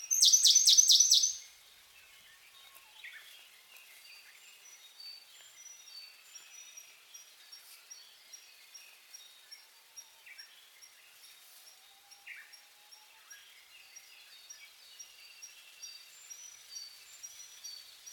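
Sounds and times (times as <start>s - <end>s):
Siberian blue robin ticking and trilling: 0.0s - 1.4s.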